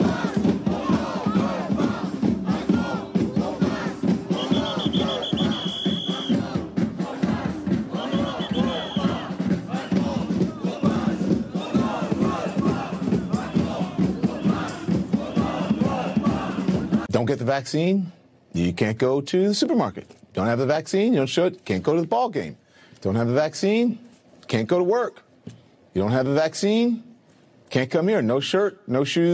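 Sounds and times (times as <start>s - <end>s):
protest crowd shouting in Paris: 0.0s - 17.1s
speech: 17.3s - 27.1s, 27.7s - 29.3s.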